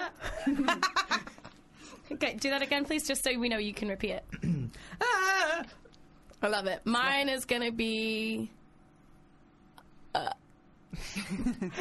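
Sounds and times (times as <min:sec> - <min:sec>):
speech: 0:00.4 - 0:00.9, 0:02.2 - 0:05.2, 0:06.4 - 0:08.6, 0:11.2 - 0:11.8
person burping as a buzzer sound: 0:04.3 - 0:04.8, 0:10.1 - 0:10.5.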